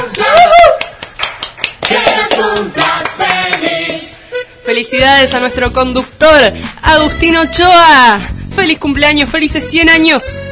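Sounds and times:
excited voices talking and calling out: 0.0 - 0.9
people clapping: 0.0 - 4.1
speech: 4.8 - 10.5.

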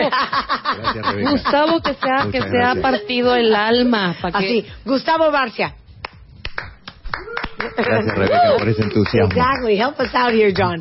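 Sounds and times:
speech: 0.1 - 5.8, 6.6 - 10.7
applause: 6.5 - 10.7.

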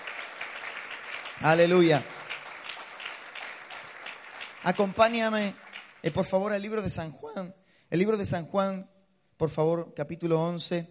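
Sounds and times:
audience applause: 0.0 - 6.4
speech: 1.4 - 2.1, 4.6 - 10.8.

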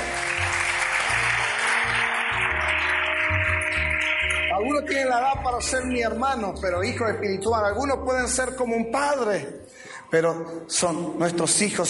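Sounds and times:
audience applause: 0.0 - 5.2
speech: 4.7 - 11.8.

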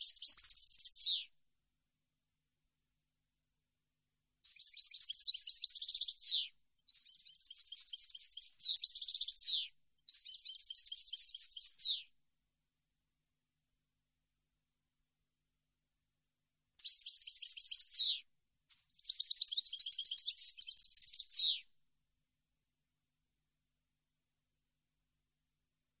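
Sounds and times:
European goldfinch song: 0.0 - 1.2, 4.4 - 12.0, 16.8 - 21.6.

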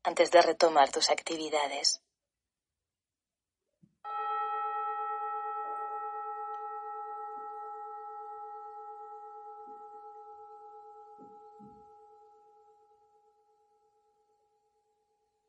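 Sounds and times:
speech: 0.0 - 2.0
meditation gong ringing: 4.1 - 12.0.

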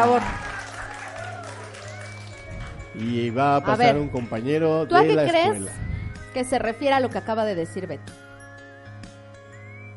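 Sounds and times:
speech: 0.0 - 0.5, 3.0 - 8.2
audience applause: 0.0 - 2.9.

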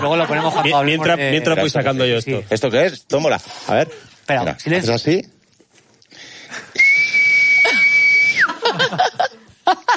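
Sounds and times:
laughter: 0.0 - 1.0, 8.4 - 9.9
speech: 0.0 - 5.4
person whistling without using the lips: 6.7 - 8.5.

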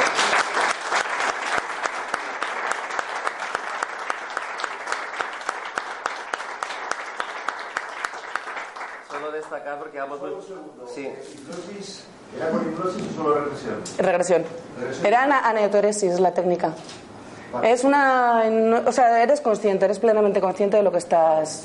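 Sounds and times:
loud audience applause: 0.0 - 9.6
speech: 9.6 - 21.6.

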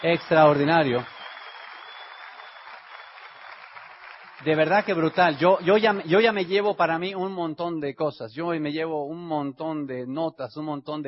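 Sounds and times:
speech: 0.0 - 1.1, 4.4 - 11.0
audience applause for the speakers: 0.0 - 6.4.

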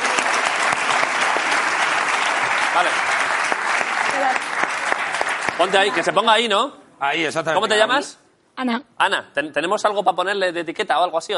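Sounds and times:
live show audience applause: 0.0 - 6.3
speech: 2.8 - 3.2, 4.2 - 4.6, 5.6 - 11.3.

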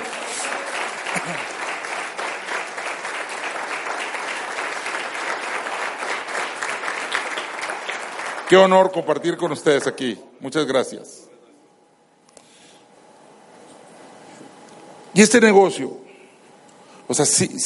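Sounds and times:
audience applauding: 0.0 - 9.2
speech: 8.5 - 11.2, 15.2 - 16.1, 17.1 - 17.6.

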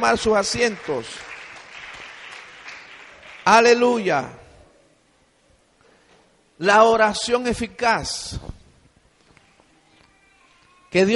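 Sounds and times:
speech: 0.0 - 1.3, 3.4 - 4.4, 6.6 - 8.6, 10.9 - 11.1
audience applauding: 0.2 - 3.8.

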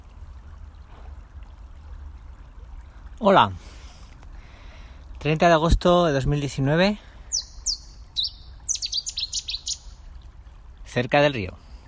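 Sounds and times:
speech: 3.2 - 3.8, 5.2 - 7.1, 10.9 - 11.6
small bird chirping near a river: 7.3 - 10.0.

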